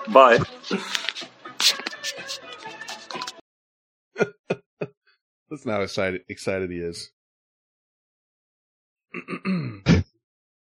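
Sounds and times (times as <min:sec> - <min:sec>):
speech: 0:00.1 - 0:01.1, 0:05.6 - 0:07.2, 0:09.2 - 0:10.1
man clearing his throat: 0:09.2 - 0:10.1.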